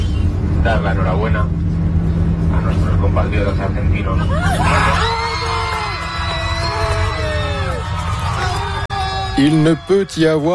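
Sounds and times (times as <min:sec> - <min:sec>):
speech: 0:00.6 - 0:01.8, 0:02.6 - 0:05.1, 0:09.4 - 0:10.5
airline passengers on a flight screaming with joy: 0:04.4 - 0:10.5.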